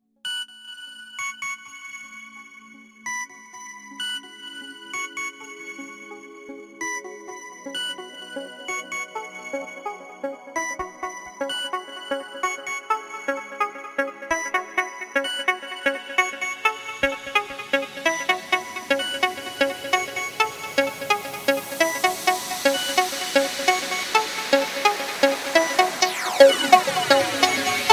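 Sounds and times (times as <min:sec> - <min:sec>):
techno club music: 0:06.9 - 0:27.9.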